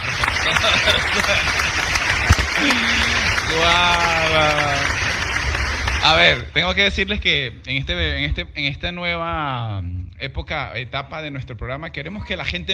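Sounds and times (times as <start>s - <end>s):
laughter: 0.0s - 5.4s
audience applause: 0.0s - 6.7s
speech: 0.6s - 1.9s, 2.6s - 5.0s, 6.0s - 12.7s.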